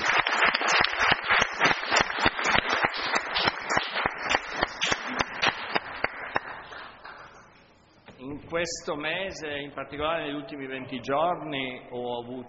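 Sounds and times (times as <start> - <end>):
group applauding: 0.0 - 7.6
speech: 8.5 - 12.4.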